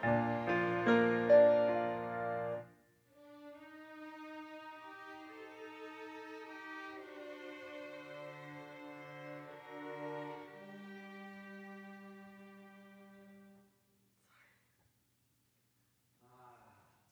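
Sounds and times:
piano: 0.0s - 2.8s.

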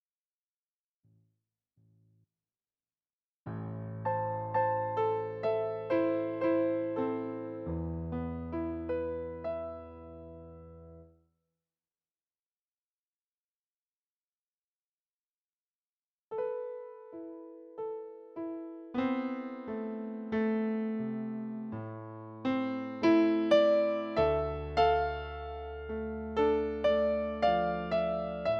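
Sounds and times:
piano: 3.5s - 11.2s, 16.3s - 28.5s.

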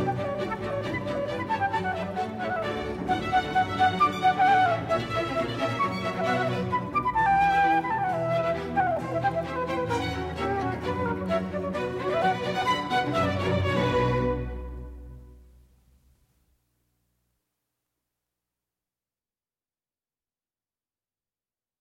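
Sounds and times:
flute piece: 0.0s - 15.4s.

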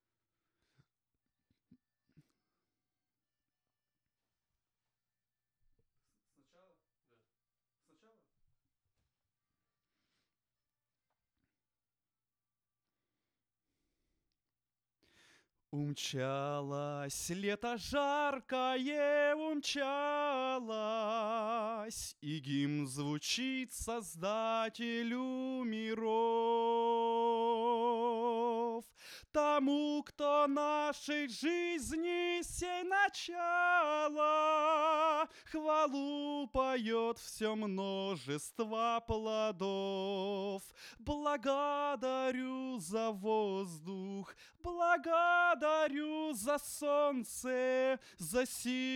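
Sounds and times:
vocals: 15.6s - 48.9s.

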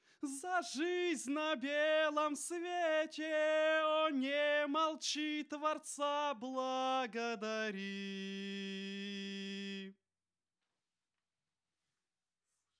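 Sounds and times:
vocals: 0.0s - 10.0s.

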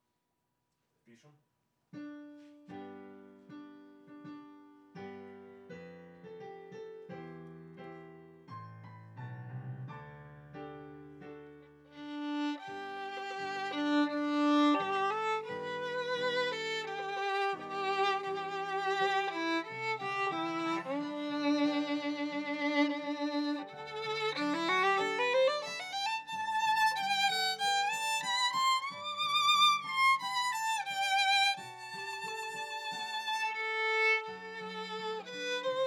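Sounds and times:
viola: 11.9s - 35.8s.

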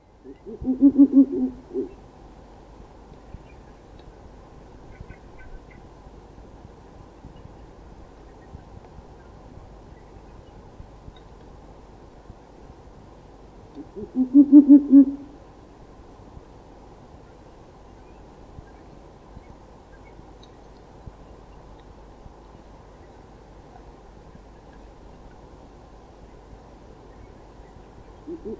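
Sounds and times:
faint hiss: 0.0s - 28.5s
owl hooting: 0.2s - 2.0s, 13.8s - 15.4s, 28.2s - 28.5s.

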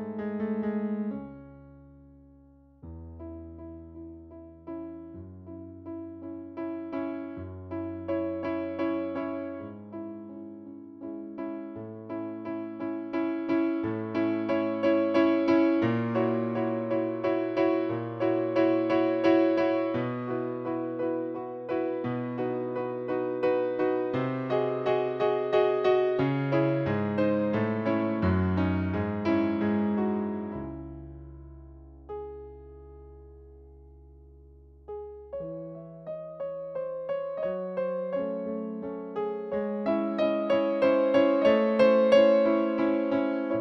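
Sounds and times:
piano: 0.0s - 43.5s.

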